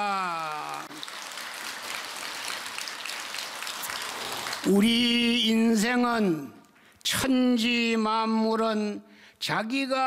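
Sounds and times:
audience applauding: 0.0 - 5.2
speech: 4.6 - 10.0.

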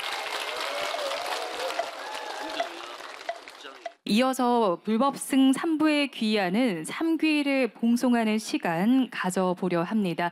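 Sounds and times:
audience applause: 0.0 - 4.0
speech: 4.1 - 10.3.

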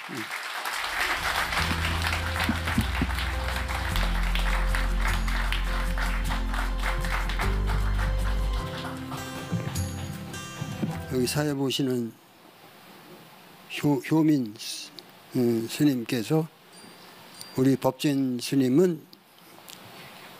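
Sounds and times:
audience applause welcoming a speaker: 0.0 - 10.3
speech: 0.1 - 0.4, 11.2 - 12.2, 13.8 - 14.7, 15.3 - 16.6, 17.6 - 19.1.

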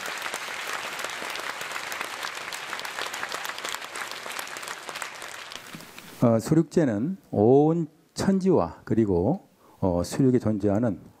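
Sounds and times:
audience applause: 0.0 - 5.8
speech: 6.2 - 11.1.

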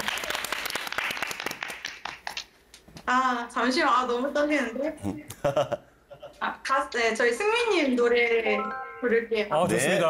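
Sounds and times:
audience applause: 0.0 - 2.4
speech: 3.1 - 5.8, 6.4 - 10.0.

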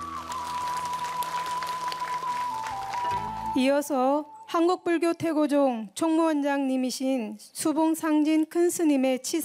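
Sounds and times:
audience applause: 0.0 - 3.5
speech: 3.6 - 9.4.

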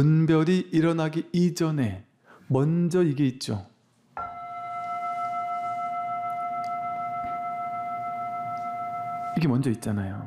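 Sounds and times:
speech: 0.0 - 3.7, 9.4 - 10.2
bell ringing: 4.2 - 10.2.

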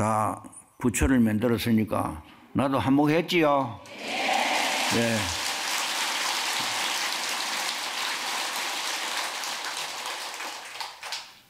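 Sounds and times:
speech: 0.0 - 5.4
crowd applause: 3.9 - 11.4.

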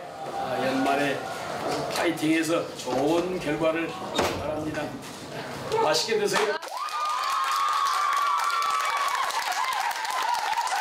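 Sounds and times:
speech: 0.3 - 6.7
crowd of students cheering and clapping: 6.6 - 10.7
high-pitched shouts and whoops: 6.6 - 10.7.

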